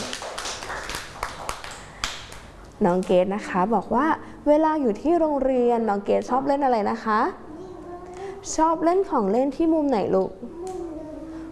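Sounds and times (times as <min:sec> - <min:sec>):
young children clapping hands for a classmate in class: 0:00.0 - 0:02.6
speech: 0:02.8 - 0:07.4, 0:08.5 - 0:10.6.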